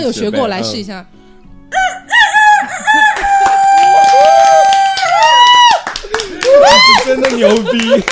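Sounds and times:
speech: 0.0 - 1.2, 6.6 - 8.1
person imitating a rooster crowing: 1.7 - 5.8
laughter: 2.6 - 8.1.

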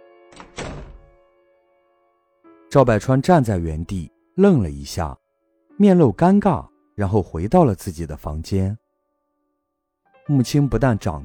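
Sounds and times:
door shutting: 0.3 - 1.2
speech: 2.7 - 5.2, 5.8 - 8.8, 10.3 - 11.2.

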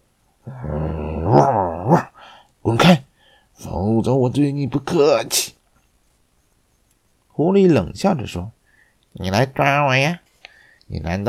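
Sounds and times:
watchdog growling and snarling bark: 0.5 - 2.2
speech: 4.3 - 5.6, 7.4 - 8.6, 9.2 - 10.2, 10.9 - 11.2.

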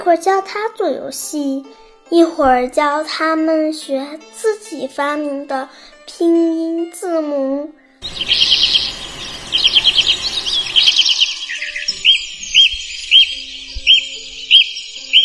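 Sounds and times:
speech: 0.0 - 8.5
magpie singing: 8.0 - 15.2.

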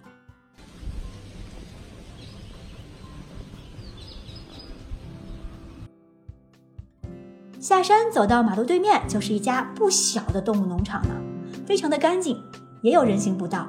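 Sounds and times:
rustling leaves: 0.6 - 5.8
wind: 0.6 - 5.9
birds chirping outdoors: 1.7 - 5.9
speech: 7.7 - 13.6.

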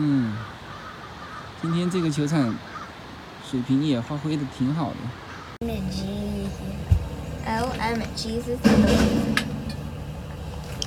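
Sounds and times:
speech: 1.6 - 2.7, 3.5 - 6.7, 7.4 - 9.5
garbage truck engine rumbling while reversing: 5.6 - 10.8.

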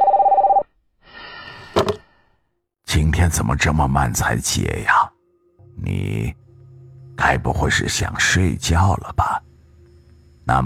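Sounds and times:
telephone ringing: 0.0 - 0.6
speech: 3.0 - 5.0, 5.8 - 6.4, 7.2 - 9.4, 10.5 - 10.6.

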